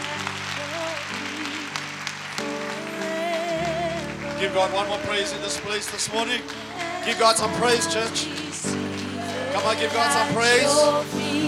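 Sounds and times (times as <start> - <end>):
audience clapping: 0.0 - 11.4
sustained organ-like chords: 0.0 - 11.4
speech: 4.4 - 8.8, 9.6 - 11.4.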